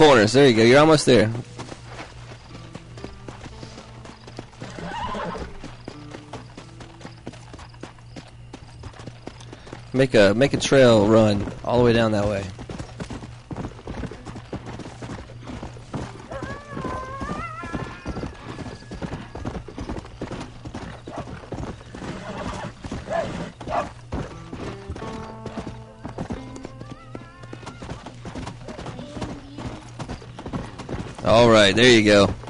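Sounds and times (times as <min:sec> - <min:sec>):
speech: 0:00.0 - 0:01.6, 0:10.0 - 0:12.6, 0:31.6 - 0:32.4
horse hooves clip-clopping in a video game: 0:00.0 - 0:32.4
horse neighing in a video game: 0:04.6 - 0:05.6, 0:16.3 - 0:18.7.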